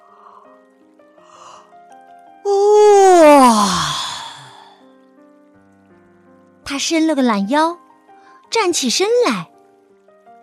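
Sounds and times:
hippo giving a big yawn: 0:02.5 - 0:04.8
speech: 0:06.8 - 0:07.8, 0:08.5 - 0:09.5.

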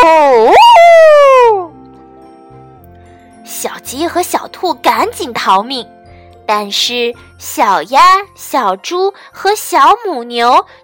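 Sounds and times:
human voice imitating a wolf's roaring howl: 0:00.0 - 0:01.7
speech: 0:04.0 - 0:10.8.

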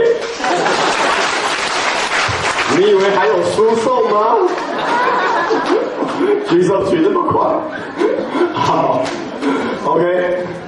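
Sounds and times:
laughter: 0:00.1 - 0:01.7, 0:04.0 - 0:10.1
audience applause: 0:00.2 - 0:06.5
speech: 0:02.8 - 0:04.6, 0:05.5 - 0:10.6.

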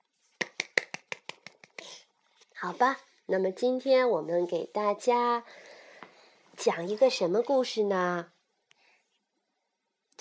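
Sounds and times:
hands clapping: 0:00.4 - 0:01.9
speech: 0:02.6 - 0:05.7, 0:06.6 - 0:08.3.

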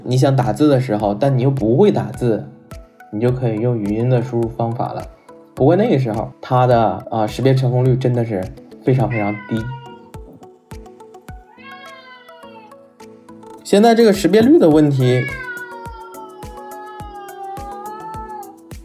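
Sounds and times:
speech: 0:00.1 - 0:09.8, 0:13.7 - 0:15.4
domestic cat meowing: 0:08.9 - 0:10.1, 0:11.4 - 0:12.9, 0:14.9 - 0:18.7.

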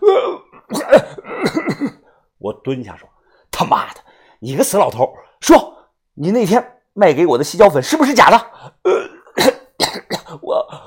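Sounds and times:
voice imitating hoarse raspy coughing: 0:00.0 - 0:02.2, 0:08.9 - 0:10.8
speech: 0:02.7 - 0:09.6.

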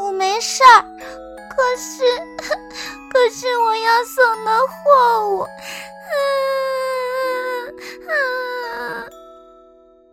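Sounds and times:
speech: 0:00.4 - 0:06.4
story character wailing cries: 0:06.1 - 0:09.1.

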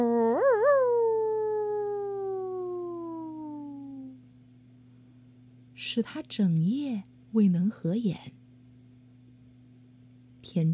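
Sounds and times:
pack of wolves howling: 0:00.0 - 0:04.0
speech: 0:05.8 - 0:08.4, 0:10.5 - 0:10.7.

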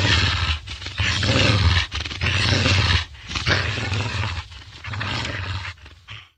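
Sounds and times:
pigs grunting and squealing: 0:00.0 - 0:06.3.

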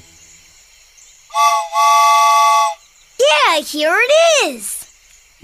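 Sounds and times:
train whistle: 0:01.3 - 0:02.8
speech: 0:03.7 - 0:04.8.

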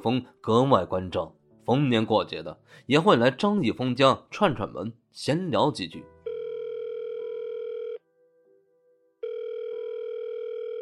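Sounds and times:
speech: 0:00.0 - 0:06.1
telephone ringing: 0:06.3 - 0:08.0, 0:09.2 - 0:10.8.

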